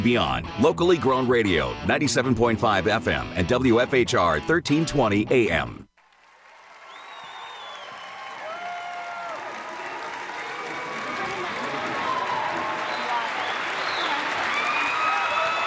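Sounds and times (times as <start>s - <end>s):
speech: 0.0s - 5.8s
audience applause: 6.0s - 15.6s.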